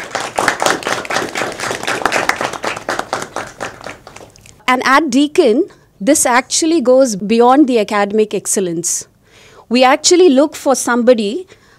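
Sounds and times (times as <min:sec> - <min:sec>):
audience applause: 0:00.0 - 0:04.4
speech: 0:04.7 - 0:11.6.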